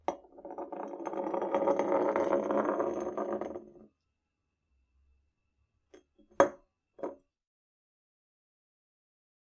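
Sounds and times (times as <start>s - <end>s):
bottle rolling: 0.0s - 3.8s.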